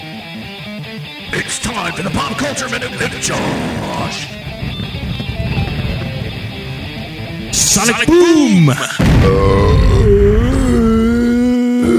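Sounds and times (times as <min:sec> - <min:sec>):
speech: 0:00.4 - 0:04.8, 0:07.8 - 0:10.4
burp: 0:08.5 - 0:11.9.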